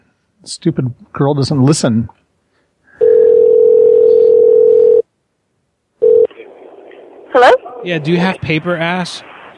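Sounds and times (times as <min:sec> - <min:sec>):
speech: 0:00.4 - 0:02.2, 0:07.4 - 0:09.3
telephone dial tone after hang-up: 0:03.0 - 0:05.0.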